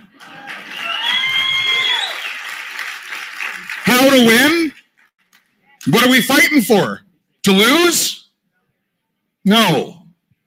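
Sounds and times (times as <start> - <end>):
audience applause: 0.0 - 5.1
high whistles and whoops: 0.2 - 2.6
speech: 4.2 - 4.6, 5.9 - 8.2, 9.4 - 10.0.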